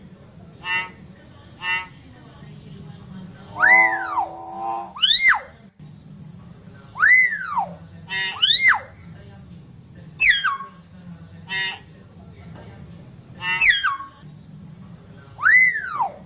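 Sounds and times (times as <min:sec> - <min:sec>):
lovebird calls used as a lure: 0:00.6 - 0:02.0, 0:03.5 - 0:05.6, 0:07.0 - 0:08.9, 0:10.2 - 0:10.8, 0:11.5 - 0:11.8, 0:13.4 - 0:14.2, 0:15.4 - 0:16.2.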